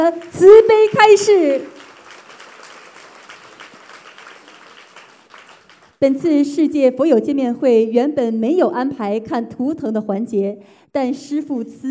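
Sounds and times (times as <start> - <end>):
audience applause: 0.0 - 6.0
speech: 0.1 - 1.7, 6.0 - 11.8.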